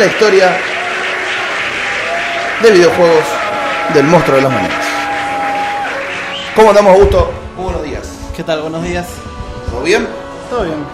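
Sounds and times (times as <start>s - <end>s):
speech: 0.0s - 0.7s, 2.6s - 4.8s, 6.6s - 10.9s
applause: 0.0s - 7.3s.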